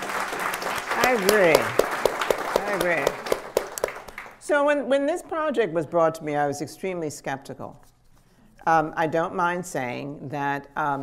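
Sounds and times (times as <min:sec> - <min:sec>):
audience applause: 0:00.0 - 0:04.4
speech: 0:01.1 - 0:01.8, 0:02.7 - 0:03.2, 0:04.5 - 0:07.9, 0:08.6 - 0:11.0.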